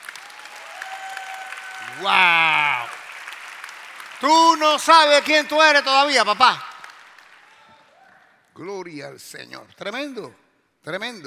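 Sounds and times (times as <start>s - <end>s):
audience applause: 0.0s - 8.2s
speech: 2.0s - 3.0s, 4.2s - 6.7s, 8.6s - 11.2s.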